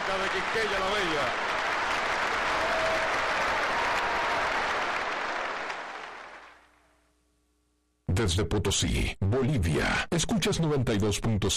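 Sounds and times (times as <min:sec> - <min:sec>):
crowd clapping: 0:00.0 - 0:06.8
speech: 0:00.1 - 0:01.6, 0:08.2 - 0:11.5.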